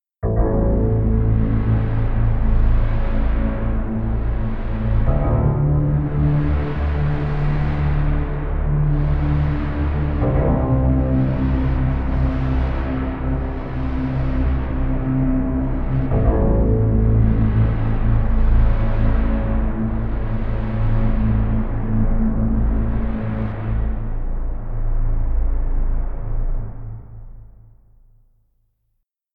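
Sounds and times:
bass: 0.0 - 28.1.

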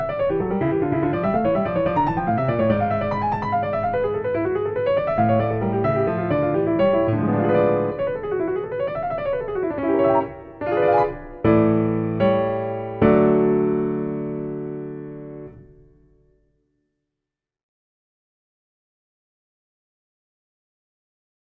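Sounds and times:
D major prelude on F grand piano: 0.0 - 16.4.

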